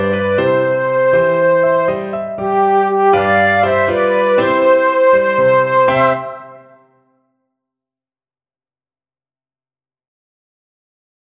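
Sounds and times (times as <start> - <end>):
flute: 0.0 - 7.1.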